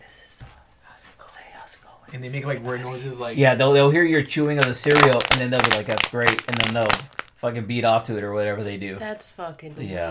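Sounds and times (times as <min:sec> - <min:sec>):
ASMR-style whispering: 0:00.0 - 0:02.1
speech: 0:01.7 - 0:10.0.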